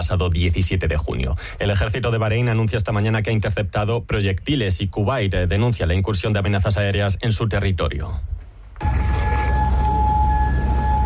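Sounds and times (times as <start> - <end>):
speech: 0.0 - 8.3
broad rumbling background: 0.0 - 11.0
air raid siren: 8.8 - 11.0.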